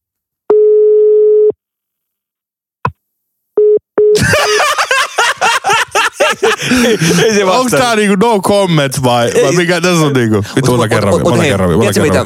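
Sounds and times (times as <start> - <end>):
telephone call tones from dialing an unknown number: 0.5 - 1.6
voices and laughter: 4.2 - 7.7
speech: 6.7 - 12.2.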